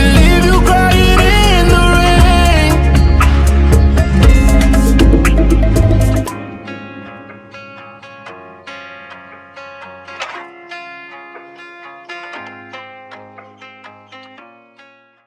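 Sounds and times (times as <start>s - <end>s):
bachata music: 0.0s - 8.3s.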